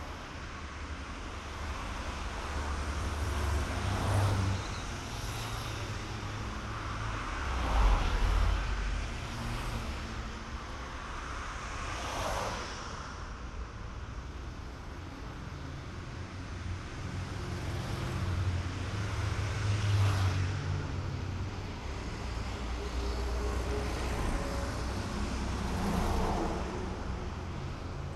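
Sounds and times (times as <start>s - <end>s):
road traffic outside: 0.0s - 28.1s.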